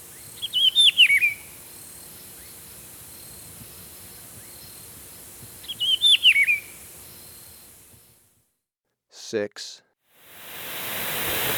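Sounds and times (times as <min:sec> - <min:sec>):
rufous-browed peppershrike singing: 0:00.0 - 0:07.7
steady insect hiss: 0:00.0 - 0:08.3, 0:10.2 - 0:11.5
speech: 0:09.3 - 0:09.9.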